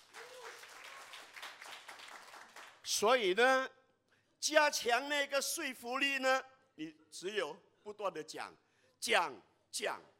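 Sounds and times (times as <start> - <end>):
audience applause: 0.0 - 2.8
speech: 2.9 - 3.8, 4.4 - 10.1.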